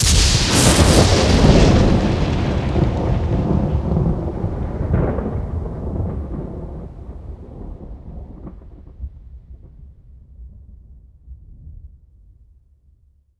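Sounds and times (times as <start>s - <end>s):
lightning thunder strike: 0.0s - 10.0s.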